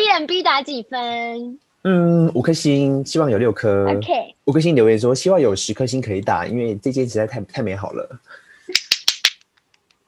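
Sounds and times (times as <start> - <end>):
speech: 0.2 - 8.4
hand clapping: 8.7 - 10.0.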